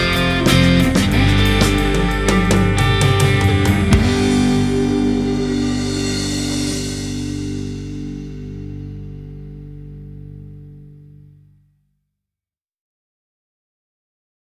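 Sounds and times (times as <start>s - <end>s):
pop rock music: 0.0s - 8.7s.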